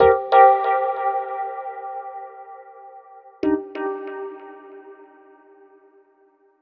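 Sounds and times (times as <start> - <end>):
dub Rhodes electric piano: 0.0 - 2.8, 3.4 - 5.7.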